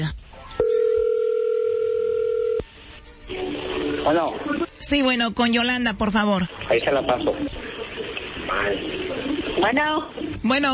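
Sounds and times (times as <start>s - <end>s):
telephone line dial tone while a call is placed: 0.6s - 2.6s
speech: 4.0s - 10.7s.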